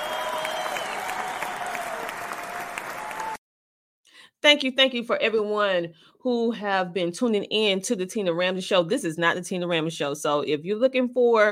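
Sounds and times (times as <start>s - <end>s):
crowd applause: 0.0s - 3.4s
speech: 4.4s - 11.4s.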